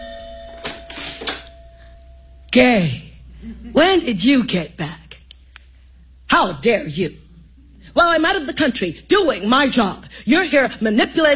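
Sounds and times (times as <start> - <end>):
doorbell ringing at home: 0.0 - 2.5
low hum: 0.0 - 11.3
speech: 2.5 - 5.0, 6.4 - 7.2, 8.0 - 11.3.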